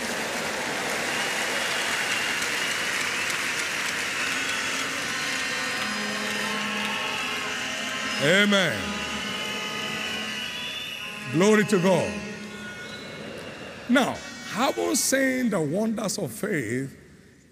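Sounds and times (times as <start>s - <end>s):
audience applause: 0.0s - 13.9s
speech: 8.2s - 8.9s, 11.3s - 12.2s, 13.9s - 17.0s.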